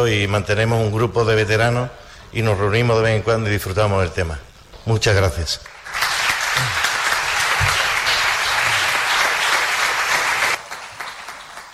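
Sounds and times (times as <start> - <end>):
speech: 0.0 - 6.0, 6.6 - 6.8
audience applause: 5.7 - 11.7.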